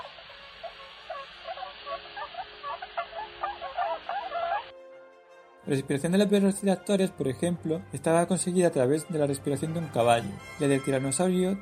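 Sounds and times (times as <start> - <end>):
swan honking call: 0.0 - 4.7
speech: 5.7 - 11.5.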